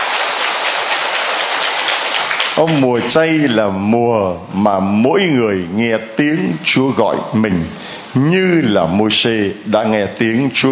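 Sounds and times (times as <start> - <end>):
audience applause: 0.0 - 2.9
speech: 2.6 - 10.6.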